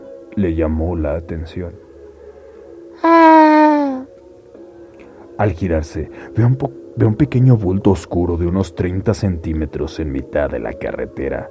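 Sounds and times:
speech: 0.4s - 1.8s, 5.4s - 11.4s
moaning or wailing sound effect: 3.0s - 4.1s.

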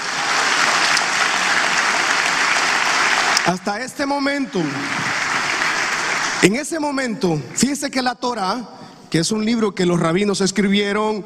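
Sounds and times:
audience applause: 0.0s - 6.5s
speech: 3.4s - 5.1s, 6.4s - 11.2s.

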